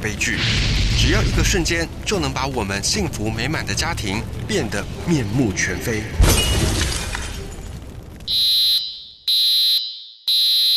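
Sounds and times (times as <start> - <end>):
speech: 0.0 - 6.8
residential smoke alarm beeping: 8.3 - 10.7.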